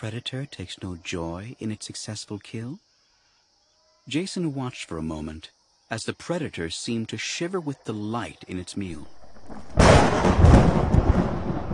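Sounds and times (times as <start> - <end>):
speech: 0.0 - 2.9, 4.0 - 11.7
shattering thunderclap: 9.4 - 11.7.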